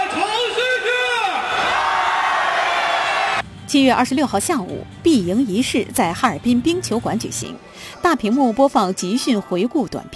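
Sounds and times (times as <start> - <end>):
crowd cheering for the home side at an ice hockey match: 0.0 - 3.4
speech: 3.7 - 10.1.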